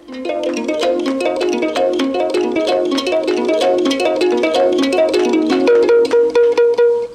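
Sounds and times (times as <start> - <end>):
Liberian harp made of bamboo, string and a gourd: 0.0 - 7.1.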